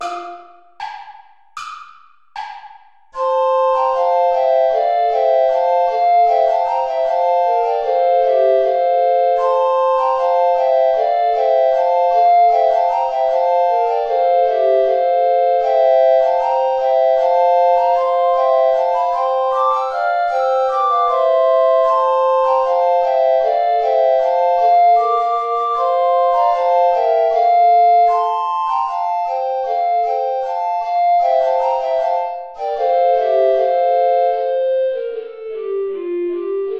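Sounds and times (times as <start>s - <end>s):
traditional play-along tune on recorders without bass recorder: 0.0s - 1.8s, 3.2s - 36.7s.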